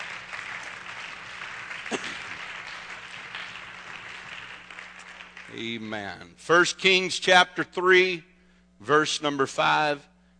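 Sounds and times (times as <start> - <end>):
audience applause for guests: 0.0 - 5.8
speech: 5.6 - 10.1.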